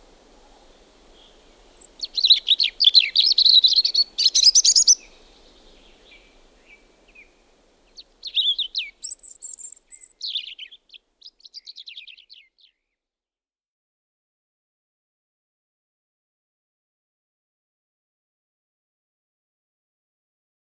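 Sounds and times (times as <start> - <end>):
European robin singing: 0.0 - 12.7.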